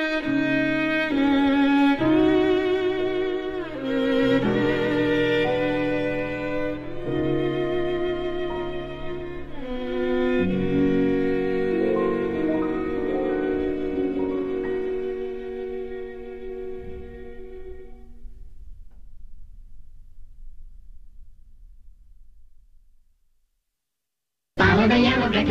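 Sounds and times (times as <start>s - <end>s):
violin: 0.0s - 18.6s, 24.6s - 25.5s
piano: 0.0s - 23.3s, 24.6s - 25.5s.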